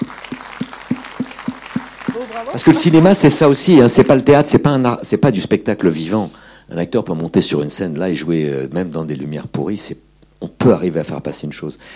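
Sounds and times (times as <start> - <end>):
audience applause: 0.0 - 4.2
speech: 2.2 - 11.9.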